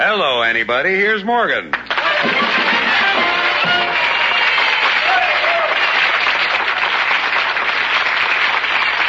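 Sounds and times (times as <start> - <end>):
speech: 0.2 - 3.3
live audience applause: 1.9 - 9.0.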